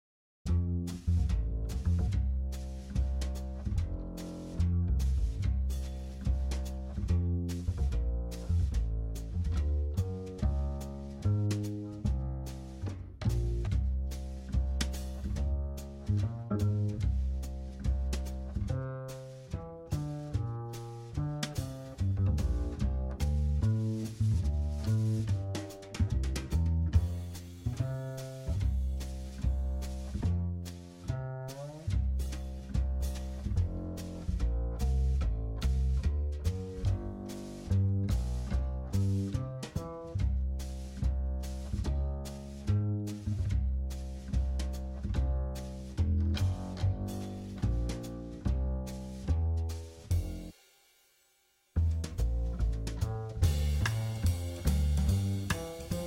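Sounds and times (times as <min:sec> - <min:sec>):
jazz backing track: 0:00.5 - 0:50.6, 0:51.8 - 0:56.0.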